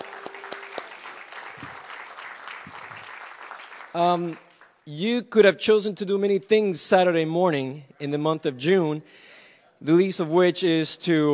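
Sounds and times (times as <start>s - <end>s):
audience applause: 0.0s - 4.8s
speech: 3.9s - 11.3s.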